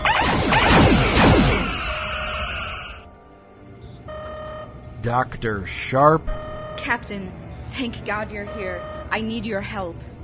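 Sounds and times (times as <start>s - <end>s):
spaceship weapons laser zaps: 0.0s - 3.0s
high electronic whine: 0.0s - 3.1s
speech: 5.0s - 10.1s.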